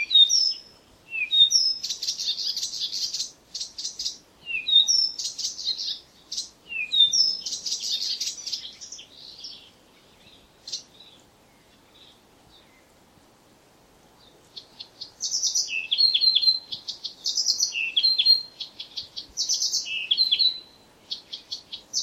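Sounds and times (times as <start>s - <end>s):
Blyth's reed warbler singing: 0.0s - 13.0s, 14.2s - 22.0s.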